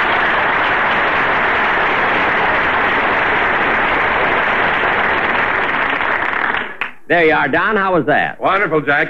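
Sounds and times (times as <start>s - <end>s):
audience applause: 0.0s - 7.0s
speech: 7.1s - 9.0s.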